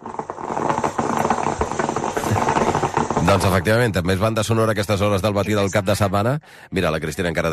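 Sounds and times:
old-style stovetop coffee maker brewing: 0.0 - 5.2
speech: 3.3 - 7.5.

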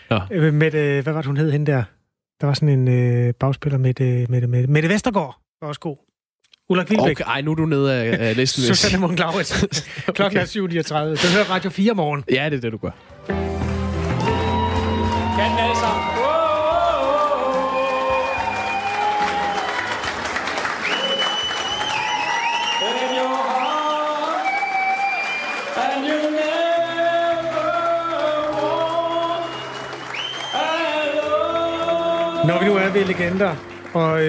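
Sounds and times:
speech: 0.1 - 6.0, 6.7 - 13.4, 32.5 - 34.2
laughter: 8.0 - 10.5
crowd cheering at election party: 13.2 - 34.2
crowd singing at election party: 16.1 - 18.3, 25.8 - 29.9.

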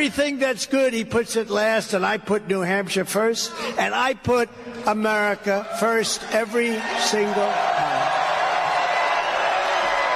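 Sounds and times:
speech: 0.0 - 8.1
crowd cheering at a political rally in New Hampshire: 5.5 - 10.1.

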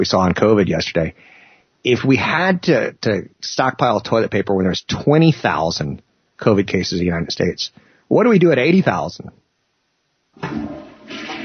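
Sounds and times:
speech: 0.0 - 9.4, 10.4 - 10.8
toilet flushing: 10.4 - 11.4.

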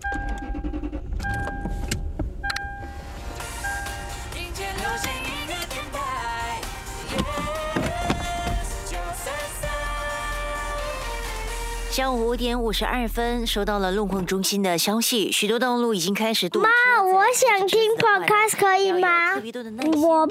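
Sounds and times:
car engine and cabin rumble while driving to kindergarten: 0.0 - 14.3
music with clear melodic tones: 2.6 - 14.3
speech: 12.0 - 20.2.

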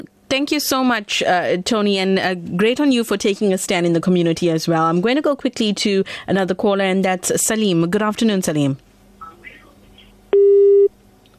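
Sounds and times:
speech: 0.0 - 8.9
telephone busy tone on a dropped caller's line: 10.4 - 10.9.

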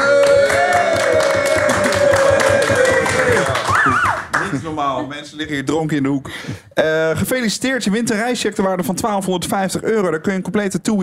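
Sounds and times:
audience applauding loudly: 0.0 - 4.8
crowd noise: 0.0 - 5.3
speech: 4.8 - 11.0.

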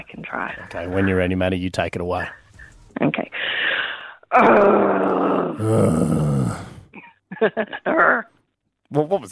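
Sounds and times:
speech: 0.1 - 2.4, 3.0 - 3.3, 4.3 - 6.6, 7.4 - 8.3, 8.9 - 9.3
person imitating a cute little growl: 4.3 - 6.9.

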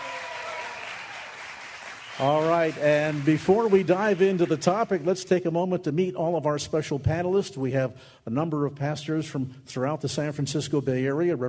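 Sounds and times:
studio audience applause: 0.0 - 5.1
speech: 2.2 - 11.4.

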